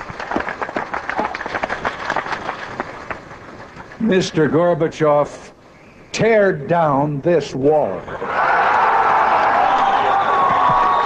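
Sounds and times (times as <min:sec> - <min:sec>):
large crowd applause: 0:00.0 - 0:04.0, 0:08.2 - 0:11.0
speech: 0:04.0 - 0:05.6, 0:06.2 - 0:08.4
scattered cheering voices: 0:08.1 - 0:11.0.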